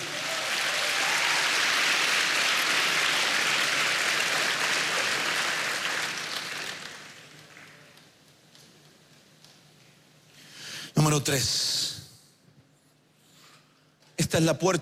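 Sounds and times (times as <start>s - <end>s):
people clapping for the Lord: 0.0s - 8.2s
speech: 11.2s - 11.8s, 14.3s - 14.7s.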